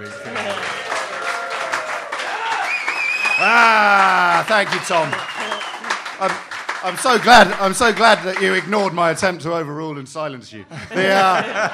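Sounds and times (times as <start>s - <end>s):
round of applause: 0.0s - 9.3s
speech: 3.4s - 5.3s, 6.2s - 11.7s
laughter: 10.7s - 11.7s.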